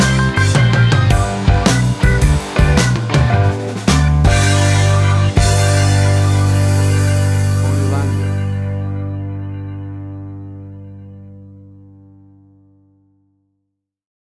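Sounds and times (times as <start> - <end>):
bluesy country rock music: 0.0 - 11.4.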